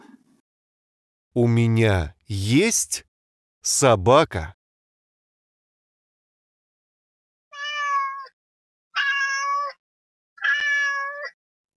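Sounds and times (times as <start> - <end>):
speech: 1.4 - 4.6
cat meowing: 7.5 - 8.4, 9.0 - 9.8, 10.4 - 11.4.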